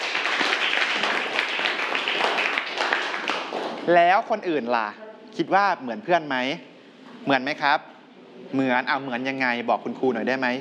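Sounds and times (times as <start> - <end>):
classroom applause for a student: 0.0 - 4.2
speech: 3.9 - 10.5.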